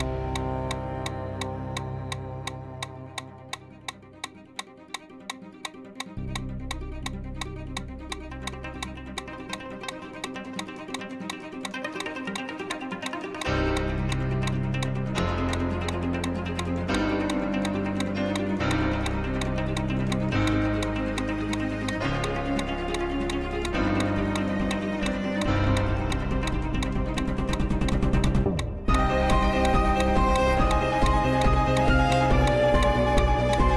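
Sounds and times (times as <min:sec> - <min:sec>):
music with deep bass notes: 0:00.0 - 0:04.1, 0:06.2 - 0:10.2, 0:13.4 - 0:33.7
metronome clicking at 170 steps per minute: 0:00.0 - 0:33.7.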